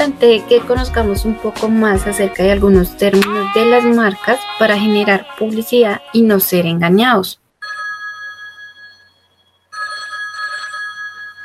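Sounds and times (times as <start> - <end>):
speech: 0.0 - 7.4
mobile phone ringing with a call: 7.6 - 11.4.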